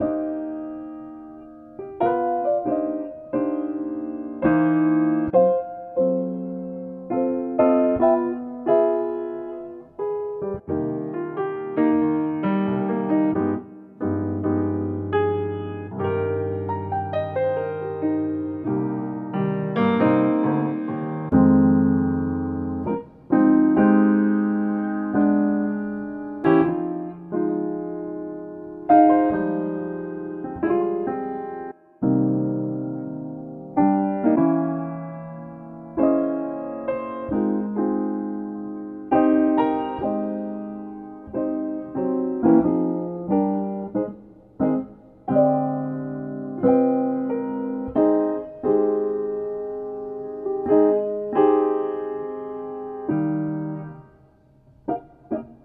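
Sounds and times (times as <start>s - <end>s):
piano music: 0.0s - 55.6s.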